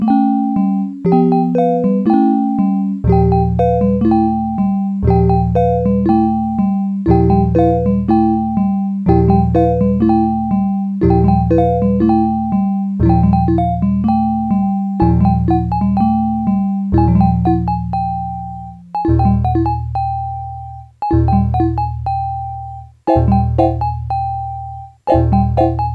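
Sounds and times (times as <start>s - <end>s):
kitsch horror music: 0.1s - 25.9s.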